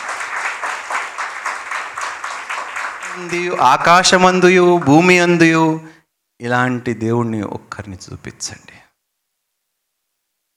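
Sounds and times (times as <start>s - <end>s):
church congregation clapping in unison to glorify God: 0.0s - 5.8s
speech: 3.2s - 8.8s.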